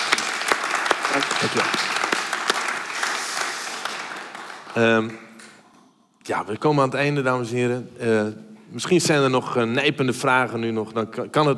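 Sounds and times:
crowd applauding: 0:00.0 - 0:05.6
speech: 0:01.1 - 0:02.1, 0:04.7 - 0:05.3, 0:06.3 - 0:11.5.

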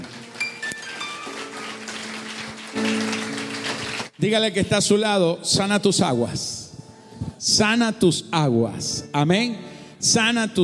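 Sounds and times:
audience applause: 0:00.0 - 0:04.2
speech: 0:04.2 - 0:06.6, 0:07.5 - 0:10.6.

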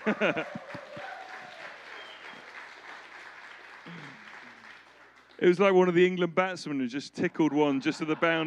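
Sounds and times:
laughter: 0:00.0 - 0:02.2, 0:07.2 - 0:08.4
crowd clapping politely: 0:00.0 - 0:06.2
speech: 0:00.1 - 0:00.8, 0:05.4 - 0:08.4.

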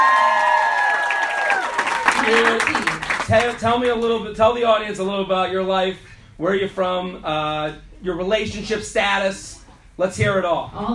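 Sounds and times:
comedy club audience in Chicago cheering: 0:00.0 - 0:03.6
comedy club audience in Chicago applauding a comedian: 0:00.0 - 0:04.2
speech: 0:02.3 - 0:10.9.

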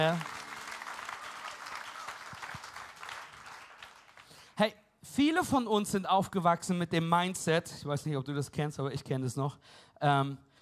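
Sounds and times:
speech: 0:00.0 - 0:00.4, 0:04.6 - 0:10.5
audience applause: 0:00.0 - 0:04.5.

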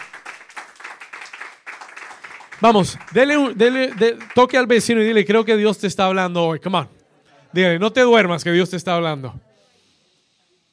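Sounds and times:
audience applause: 0:00.0 - 0:05.0
speech: 0:02.6 - 0:09.5.

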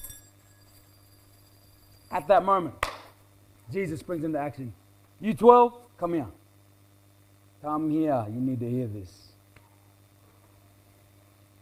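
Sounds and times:
copper coins clinking: 0:00.0 - 0:02.4
low steady hum: 0:00.0 - 0:11.6
speech: 0:02.1 - 0:02.8, 0:03.7 - 0:06.4, 0:07.6 - 0:09.2.

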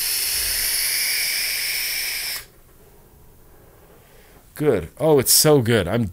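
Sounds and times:
vape tank hissing during a hard draw: 0:00.0 - 0:02.6
speech: 0:04.6 - 0:06.1.

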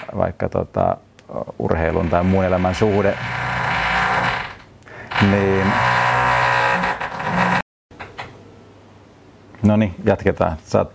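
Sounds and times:
speech: 0:00.1 - 0:03.4, 0:05.2 - 0:06.0, 0:09.6 - 0:10.9
drilling work: 0:01.9 - 0:07.6.

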